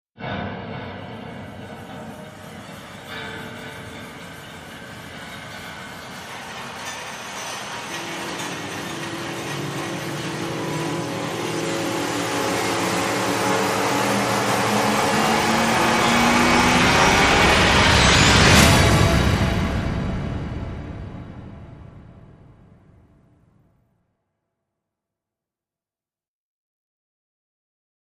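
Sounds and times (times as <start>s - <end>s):
rising sound: 0.7s - 23.1s.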